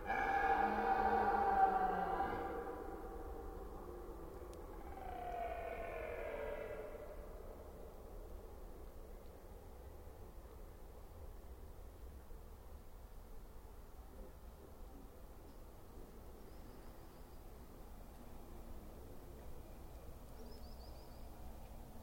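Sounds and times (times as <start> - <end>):
red deer stag roaring during the rut in Forêt d'Orleans, France: 0.0 - 3.6, 4.7 - 7.4.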